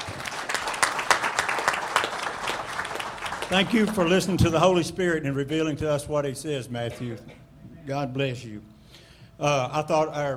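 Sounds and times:
audience applause: 0.0s - 4.8s
speech: 3.5s - 8.7s, 9.4s - 10.3s.

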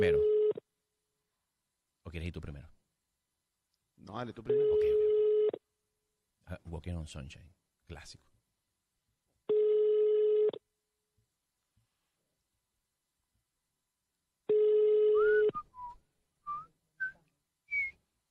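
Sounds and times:
speech: 0.0s - 0.3s, 2.1s - 2.8s, 4.0s - 5.0s, 6.5s - 8.3s
outgoing phone call ringback tones ringing unanswered: 4.5s - 5.6s, 9.5s - 10.6s, 14.5s - 15.5s
person whistling short rising melodic notes: 15.2s - 18.0s.

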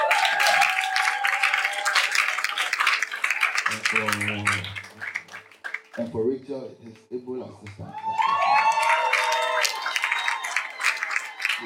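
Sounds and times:
crowd clapping: 0.0s - 6.2s, 7.6s - 11.6s
speech: 3.8s - 4.8s, 6.0s - 8.6s.

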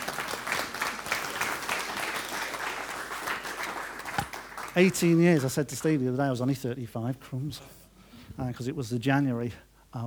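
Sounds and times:
audience applause: 0.0s - 5.5s
speech: 4.8s - 7.8s, 8.4s - 10.0s.

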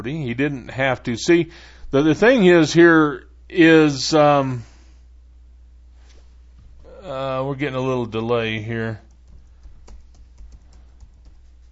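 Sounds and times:
speech: 0.0s - 4.7s, 7.0s - 9.0s
typing on a computer keyboard: 9.0s - 11.6s.

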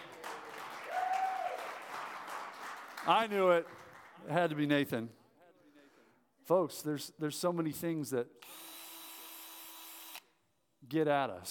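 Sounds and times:
audience applause: 0.0s - 4.2s
speech: 3.1s - 5.2s, 6.5s - 8.7s, 10.8s - 11.4s.

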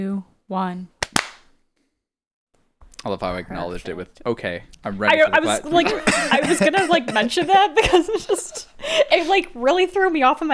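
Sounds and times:
speech: 0.0s - 1.0s, 3.0s - 10.5s
hand claps for audio sync: 1.0s - 1.5s
laughter: 5.1s - 10.2s.

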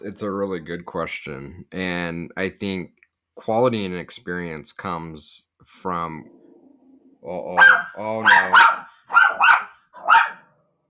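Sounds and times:
speech: 0.0s - 6.4s, 7.2s - 8.8s
dog barking at delivery driver: 7.6s - 10.5s.

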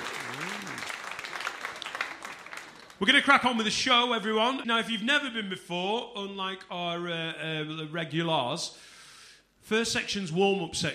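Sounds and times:
audience round of applause: 0.0s - 3.0s
speech: 3.0s - 8.9s, 9.7s - 10.9s.

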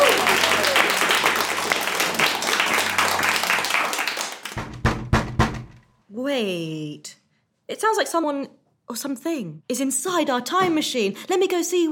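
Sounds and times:
audience applause: 0.0s - 4.7s
speech: 6.4s - 11.9s.

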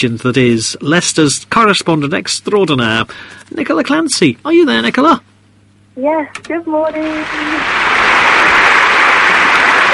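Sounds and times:
speech: 0.0s - 5.3s, 6.0s - 7.8s
applause: 7.0s - 9.9s
cheering: 7.2s - 9.9s.

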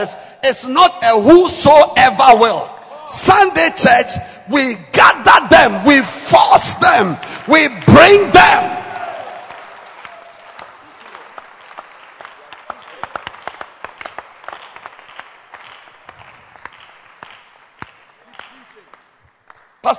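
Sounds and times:
speech: 0.0s - 8.8s
crowd clapping: 6.8s - 19.9s.

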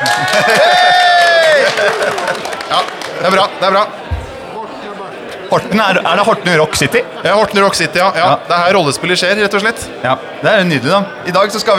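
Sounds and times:
audience cheering and clapping: 0.0s - 4.6s
laughter: 0.0s - 11.7s
speech: 0.4s - 0.9s, 1.6s - 4.0s, 5.5s - 11.7s.

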